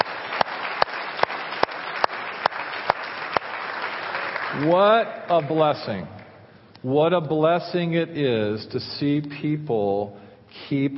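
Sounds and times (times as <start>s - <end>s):
audience applause: 0.0s - 5.7s
speech: 4.6s - 6.2s, 6.8s - 10.9s.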